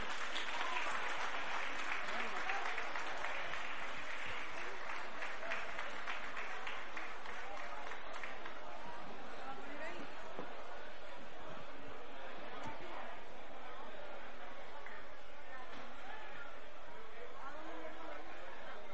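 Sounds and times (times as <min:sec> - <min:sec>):
audience applause: 0:00.0 - 0:08.8
murmur of voices in the crowd: 0:00.0 - 0:18.9.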